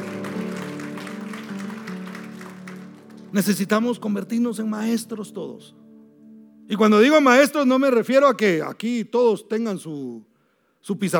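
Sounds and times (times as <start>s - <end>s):
audience applause: 0.0s - 3.6s
speech: 3.3s - 5.8s, 6.7s - 11.1s.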